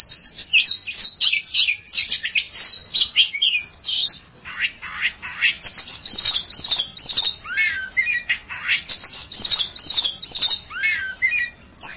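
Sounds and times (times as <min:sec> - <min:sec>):
Oriental magpie-robin song: 0:00.0 - 0:11.9.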